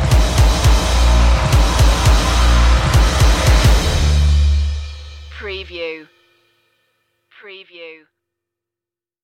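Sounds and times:
bass drums: 0:00.0 - 0:05.8.

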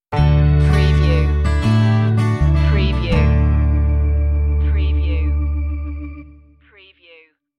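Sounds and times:
music stinger: 0:00.2 - 0:06.6.

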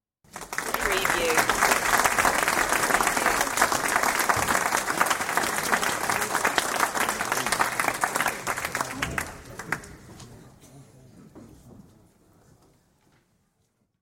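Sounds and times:
audience applause: 0:00.3 - 0:10.0.

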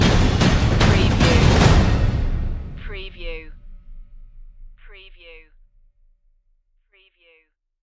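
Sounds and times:
tense tom drum stinger: 0:00.0 - 0:04.8.

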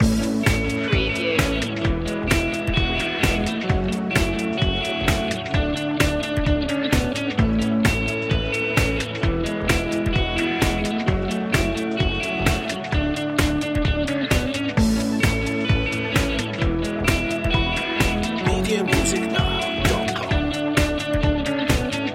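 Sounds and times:
start-up pop rock loop: 0:00.0 - 0:22.1.

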